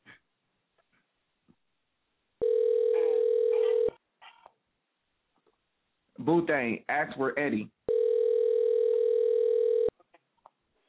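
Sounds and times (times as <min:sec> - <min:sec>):
steady loud telephone dial tone: 0:02.4 - 0:03.9, 0:07.9 - 0:09.9
speech: 0:06.3 - 0:07.8.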